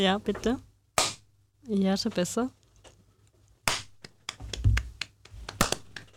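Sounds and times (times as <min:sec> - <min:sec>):
speech: 0:00.0 - 0:00.7, 0:01.6 - 0:02.6
single hand clap: 0:03.7 - 0:06.1.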